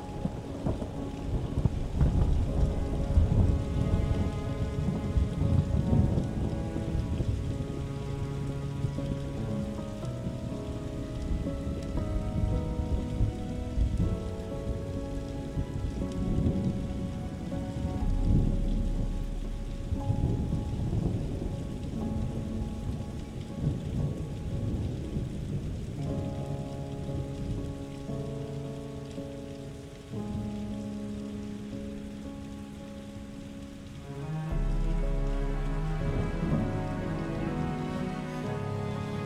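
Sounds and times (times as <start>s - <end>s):
gentle rain: 0.0s - 39.2s
serene music: 0.0s - 39.2s
storm: 0.0s - 39.2s.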